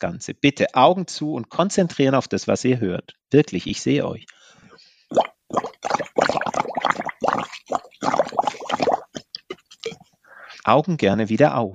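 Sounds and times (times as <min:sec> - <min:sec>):
speech: 0:00.0 - 0:04.5, 0:10.6 - 0:11.7
coarse crackles in lung auscultation heard through a stethoscope: 0:05.1 - 0:10.0.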